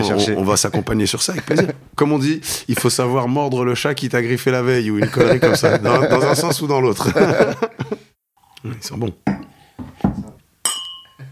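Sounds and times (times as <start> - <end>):
laughter: 0.0 - 1.8, 4.9 - 8.1
speech: 0.0 - 8.0, 8.6 - 9.4
wine glasses clinking in a toast: 10.6 - 11.2.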